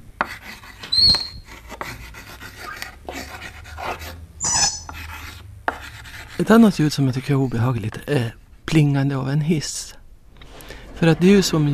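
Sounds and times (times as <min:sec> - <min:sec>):
chalk squeaking on a blackboard: 0:00.2 - 0:07.5
speech: 0:01.0 - 0:01.4, 0:06.4 - 0:10.0, 0:11.0 - 0:11.7.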